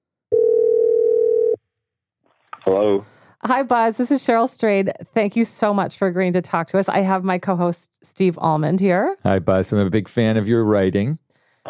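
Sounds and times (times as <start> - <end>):
telephone dial tone: 0.3 - 1.6
speech: 2.7 - 11.6.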